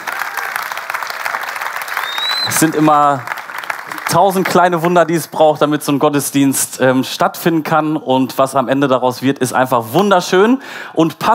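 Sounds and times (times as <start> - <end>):
audience applause for the team: 0.0 - 5.4
speech: 2.5 - 3.3, 4.1 - 11.3.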